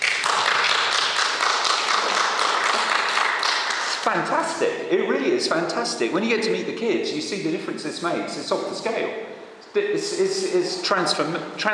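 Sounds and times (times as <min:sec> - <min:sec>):
audience applauding: 0:00.0 - 0:04.0
speech: 0:04.0 - 0:11.7.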